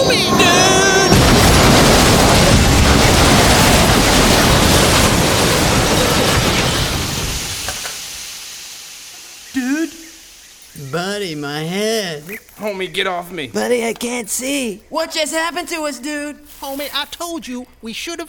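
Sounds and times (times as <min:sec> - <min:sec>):
massive roaring crash of a train collision: 0:00.0 - 0:10.7
speech: 0:12.8 - 0:18.2.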